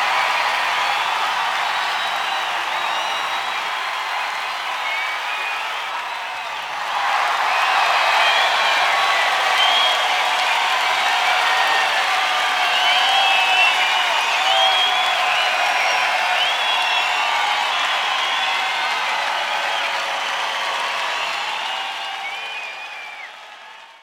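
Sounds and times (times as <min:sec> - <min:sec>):
crowd applause outdoors: 0:00.0 - 0:24.0.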